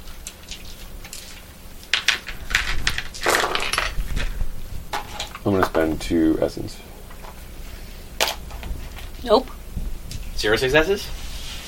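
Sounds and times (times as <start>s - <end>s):
dice clattering across a hard surface: 2.0s - 4.0s
speech: 5.5s - 6.9s, 9.2s - 9.5s, 10.4s - 11.2s.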